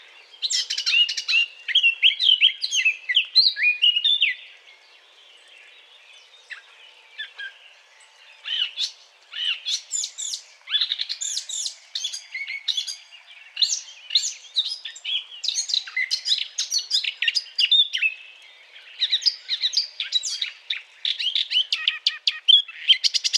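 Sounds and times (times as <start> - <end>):
Eurasian blackcap singing: 0.2 - 4.5, 8.4 - 23.3.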